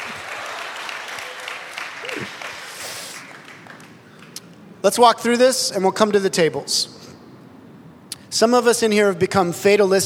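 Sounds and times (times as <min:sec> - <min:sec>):
audience applause: 0:00.0 - 0:04.4
speech: 0:04.8 - 0:07.0, 0:08.4 - 0:10.0.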